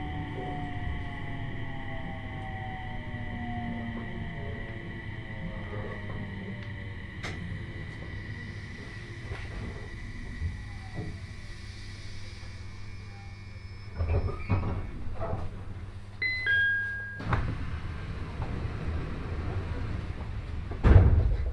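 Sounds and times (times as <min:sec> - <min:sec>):
long sustained whining tones sliding in pitch: 0:00.0 - 0:15.5
Joban Line train rumble: 0:00.0 - 0:16.2, 0:17.2 - 0:21.5.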